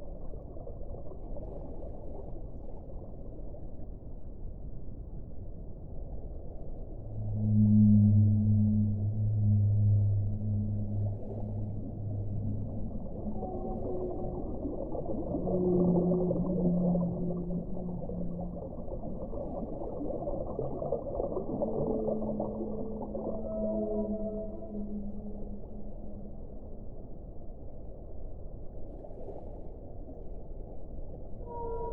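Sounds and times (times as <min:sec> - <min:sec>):
whale calls: 0:07.0 - 0:26.5, 0:31.4 - 0:31.9.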